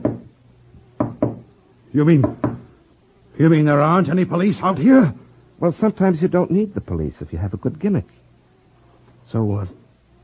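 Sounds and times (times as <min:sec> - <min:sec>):
hollow wooden knocks from a spirit-rapping box: 0:01.0 - 0:01.4, 0:02.2 - 0:02.6
speech: 0:02.0 - 0:02.5, 0:03.4 - 0:08.2, 0:09.3 - 0:09.8.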